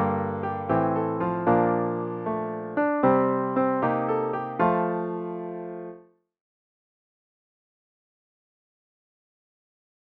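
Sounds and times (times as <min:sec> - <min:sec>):
piano: 0:00.0 - 0:06.2.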